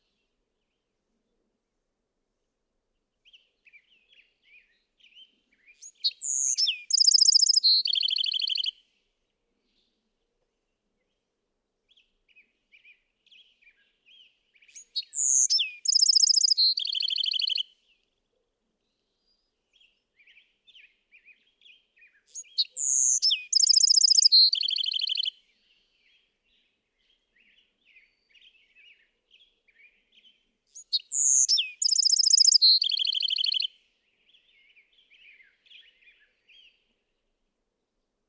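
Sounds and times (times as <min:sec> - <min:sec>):
Bewick's wren singing: 0:05.8 - 0:08.7, 0:14.7 - 0:17.6, 0:22.3 - 0:25.3, 0:30.7 - 0:33.7.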